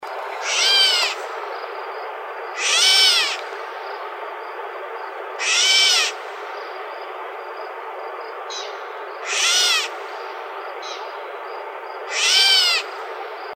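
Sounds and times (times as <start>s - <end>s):
mimid bird calls: 0.3s - 1.8s, 2.5s - 4.1s, 5.4s - 6.8s, 8.4s - 11.2s, 12.0s - 13.2s.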